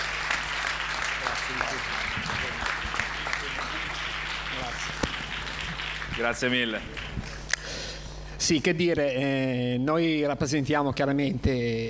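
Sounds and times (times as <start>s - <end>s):
audience applause: 0.0s - 7.3s
speech: 1.5s - 2.6s, 4.6s - 5.2s, 6.2s - 7.1s, 8.4s - 11.8s.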